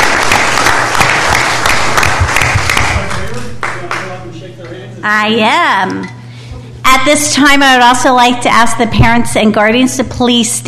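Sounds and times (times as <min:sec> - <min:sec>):
audience applause: 0:00.0 - 0:04.3
speech: 0:05.0 - 0:06.2, 0:07.0 - 0:10.6.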